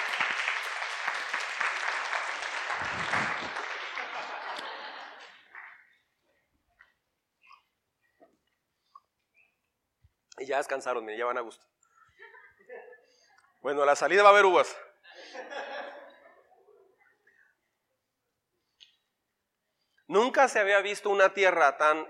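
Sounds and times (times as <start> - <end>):
crowd applause: 0.0 - 6.0
laughter: 2.6 - 5.7, 12.1 - 13.3, 15.0 - 17.2
speech: 10.5 - 11.8, 13.6 - 14.9, 20.4 - 22.0.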